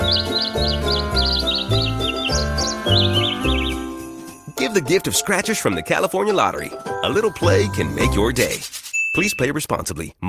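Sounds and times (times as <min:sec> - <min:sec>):
bird singing a melody: 0:00.0 - 0:04.2
speech: 0:04.8 - 0:10.2.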